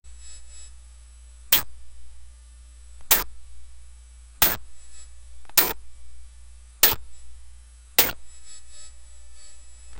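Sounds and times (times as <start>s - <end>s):
2D game energy ball pickup sound: 3.1s - 3.3s, 5.6s - 5.8s, 8.0s - 8.2s.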